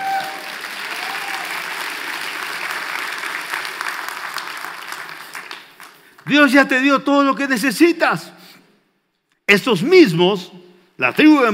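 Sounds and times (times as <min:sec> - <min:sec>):
audience applause: 0:00.0 - 0:06.3
speech: 0:06.3 - 0:08.4, 0:09.5 - 0:11.5.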